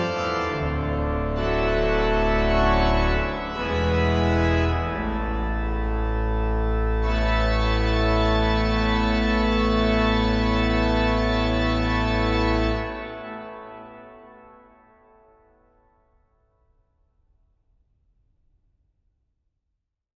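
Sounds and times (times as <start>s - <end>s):
organ toccata: 0.0s - 14.9s.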